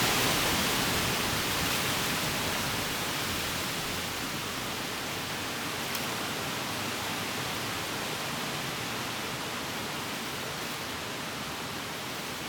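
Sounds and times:
tree leaves rustling: 0.0 - 12.4.

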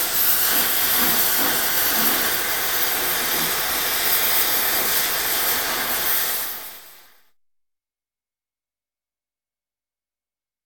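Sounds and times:
gas welding torch: 0.0 - 7.1.

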